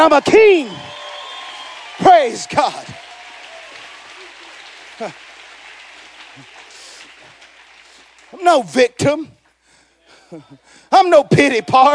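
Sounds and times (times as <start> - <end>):
speech: 0.0 - 0.9, 2.0 - 3.1, 5.0 - 5.2, 8.3 - 9.4, 10.3 - 11.9
crowd clapping hands in praise: 0.0 - 9.0
laughter: 4.1 - 5.3.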